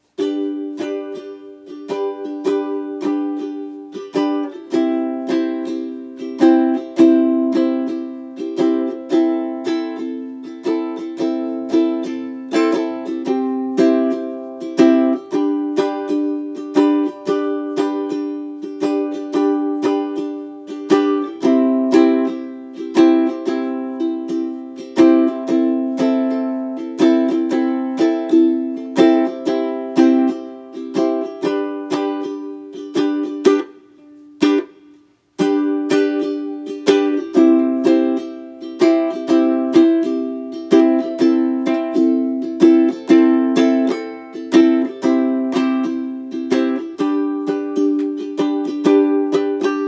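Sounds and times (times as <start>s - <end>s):
instrumental music: 0.0s - 49.8s.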